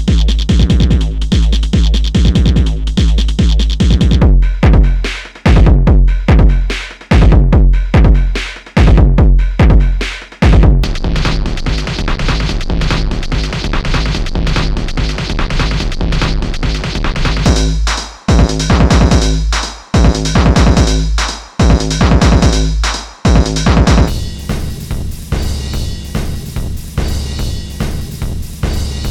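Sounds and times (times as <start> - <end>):
industrial drums: 0.0 - 29.0.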